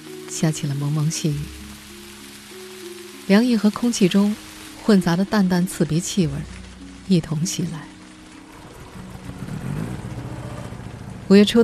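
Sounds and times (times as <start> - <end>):
speech: 0.4 - 1.6, 3.3 - 7.9, 11.3 - 11.6
motorcycle engine droning: 8.4 - 11.6.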